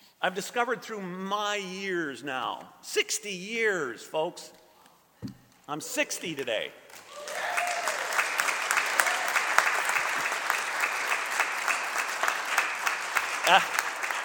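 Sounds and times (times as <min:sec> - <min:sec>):
speech: 0:00.2 - 0:04.6, 0:05.2 - 0:07.0, 0:13.5 - 0:13.8
audience clapping: 0:06.9 - 0:14.2.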